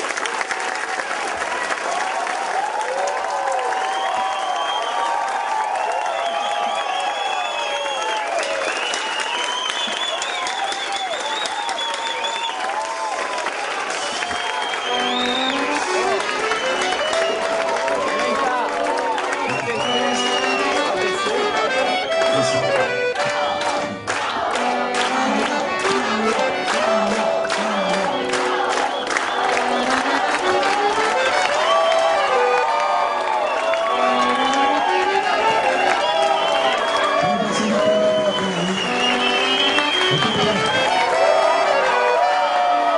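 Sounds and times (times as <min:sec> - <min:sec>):
studio audience applause: 0:00.0 - 0:42.9
cheers and whoops: 0:01.8 - 0:15.6, 0:28.7 - 0:42.9.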